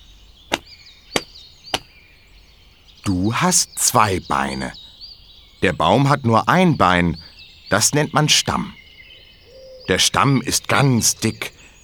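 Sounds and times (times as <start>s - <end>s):
hands slapping on legs: 1.2s - 1.9s
speech: 3.1s - 4.8s, 5.6s - 8.8s, 9.9s - 11.6s.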